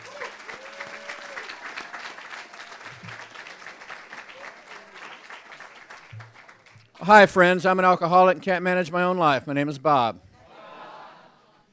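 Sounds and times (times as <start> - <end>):
round of applause: 0.0 - 7.4
speech: 7.0 - 10.2.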